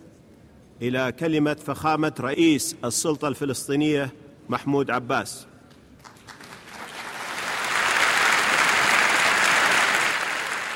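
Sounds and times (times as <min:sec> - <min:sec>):
speech: 0:00.8 - 0:05.5
large crowd applauding at the UN assembly: 0:06.0 - 0:10.7.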